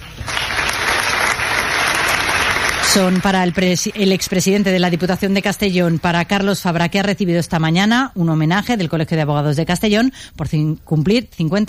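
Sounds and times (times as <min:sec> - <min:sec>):
crowd applause at a tribute ceremony: 0:00.0 - 0:06.6
speech: 0:02.9 - 0:11.6.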